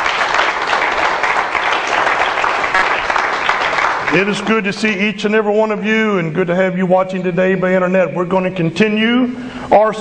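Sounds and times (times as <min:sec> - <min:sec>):
audience applause: 0:00.0 - 0:04.6
speech: 0:04.1 - 0:09.9.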